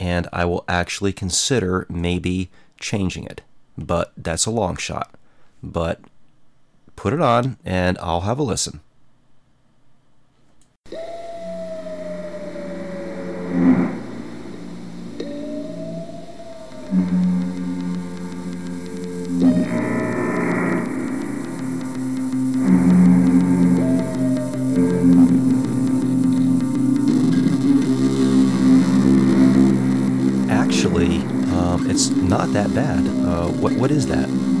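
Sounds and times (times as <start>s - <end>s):
speech: 0.0s - 6.1s, 7.0s - 8.9s, 32.0s - 34.5s
looped creepy foghorn: 10.9s - 34.5s
looped creepy noise: 10.9s - 34.5s.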